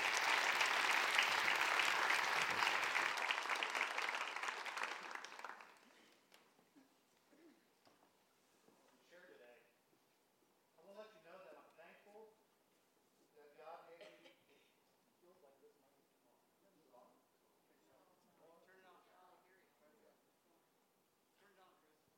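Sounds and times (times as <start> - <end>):
audience applause welcoming guests on stage: 0.0 - 6.4.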